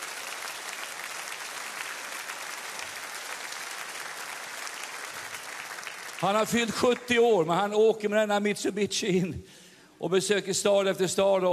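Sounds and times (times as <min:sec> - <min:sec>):
audience applause: 0:00.0 - 0:07.2
speech: 0:06.2 - 0:11.5.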